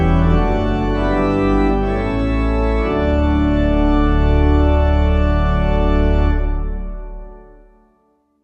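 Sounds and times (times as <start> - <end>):
pipe organ hymn: 0.0 - 8.1.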